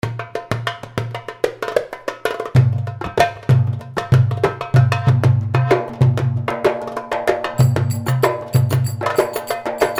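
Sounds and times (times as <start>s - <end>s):
darbuka: 0.0s - 9.9s
Rai music: 7.6s - 9.9s.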